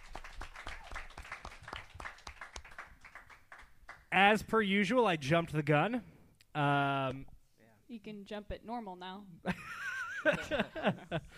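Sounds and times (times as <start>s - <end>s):
audience clapping: 0.0s - 4.1s
speech: 4.2s - 7.3s, 7.9s - 11.3s
laughter: 9.5s - 11.3s.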